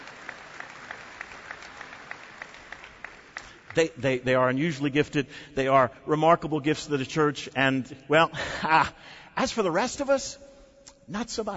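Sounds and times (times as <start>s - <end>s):
audience applause: 0.0s - 3.8s
speech: 3.7s - 10.5s, 11.1s - 11.5s.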